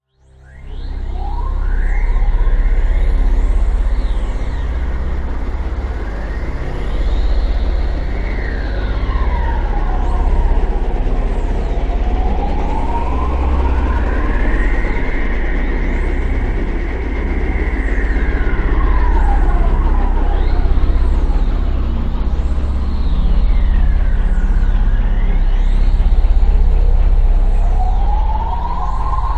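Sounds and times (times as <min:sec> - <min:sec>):
horror drone: 0:00.0 - 0:29.3.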